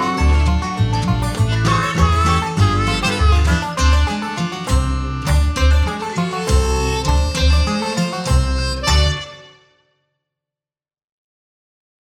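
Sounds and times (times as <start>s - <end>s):
bluegrass music: 0.0s - 9.6s.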